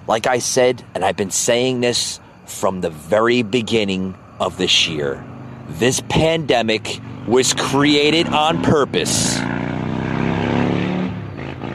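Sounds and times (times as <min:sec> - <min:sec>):
speech: 0:00.1 - 0:09.6
motorcycle going by: 0:04.8 - 0:11.7.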